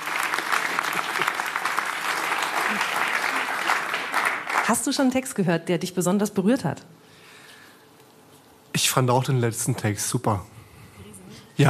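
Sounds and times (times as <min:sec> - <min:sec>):
audience applause: 0:00.0 - 0:05.1
speech: 0:04.7 - 0:07.0, 0:09.0 - 0:10.6.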